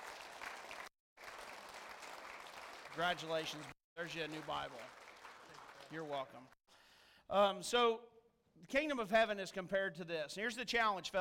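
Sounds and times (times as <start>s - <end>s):
audience applause for baptized boy: 0.0s - 6.6s
speech: 3.0s - 5.0s, 5.9s - 6.6s, 7.3s - 11.1s.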